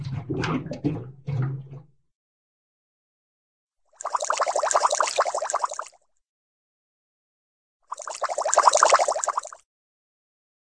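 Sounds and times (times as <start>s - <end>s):
small cartoon water bubbles: 0.0s - 2.0s, 3.9s - 6.0s, 7.9s - 9.6s.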